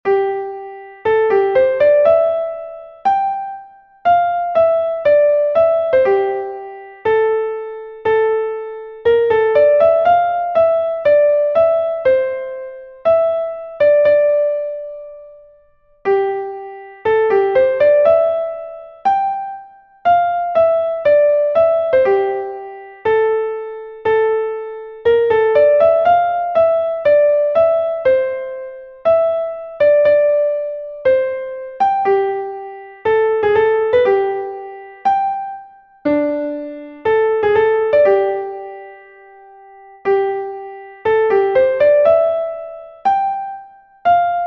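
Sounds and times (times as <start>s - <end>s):
classical piano piece: 0.0s - 44.4s.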